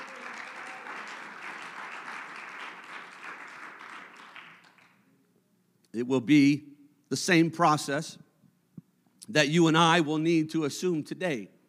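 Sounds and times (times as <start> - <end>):
audience clapping: 0.0 - 5.1
speech: 6.0 - 8.2, 9.3 - 11.6.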